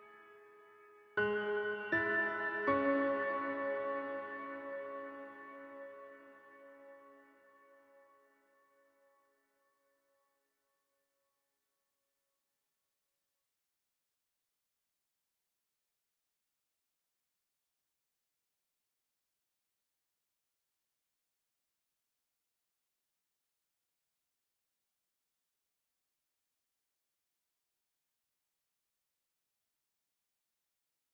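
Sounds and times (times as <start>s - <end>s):
piano: 0.0s - 9.0s.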